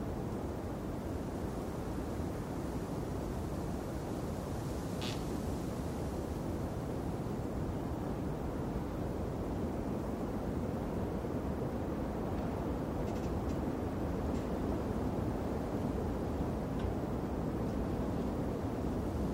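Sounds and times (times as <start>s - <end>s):
strong blustery wind roaring: 0.0s - 19.3s.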